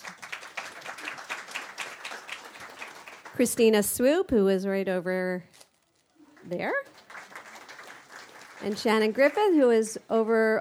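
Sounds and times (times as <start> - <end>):
audience clapping: 0.0 - 3.8, 6.4 - 9.8
speech: 3.4 - 5.6, 6.5 - 7.0, 8.6 - 10.5.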